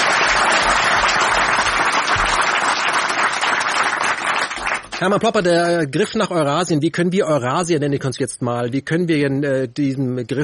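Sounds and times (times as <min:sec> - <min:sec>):
audience applause: 0:00.0 - 0:05.1
speech: 0:05.0 - 0:10.4.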